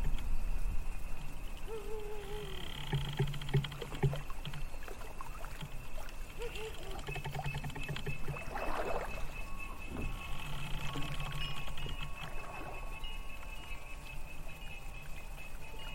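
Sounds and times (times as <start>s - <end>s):
low intermittent hums: 0.0s - 15.9s
water lapping: 1.1s - 15.9s
soft splashes and knocks: 3.1s - 13.0s.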